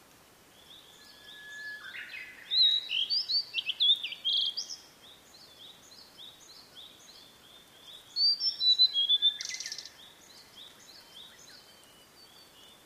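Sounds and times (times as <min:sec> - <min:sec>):
bird chirping: 0:00.5 - 0:12.8
blue-and-white flycatcher singing: 0:00.6 - 0:12.8.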